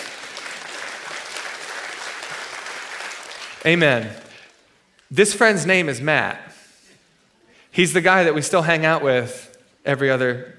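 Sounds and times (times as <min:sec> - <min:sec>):
room full of people applauding: 0:00.0 - 0:04.6
speech: 0:03.6 - 0:04.2, 0:05.1 - 0:06.5, 0:07.7 - 0:10.5.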